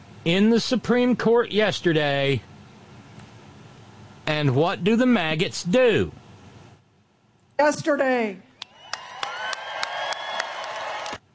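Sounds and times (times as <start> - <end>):
speech: 0.2 - 2.5, 4.4 - 6.2, 7.6 - 8.5
audience applauding: 8.6 - 11.2.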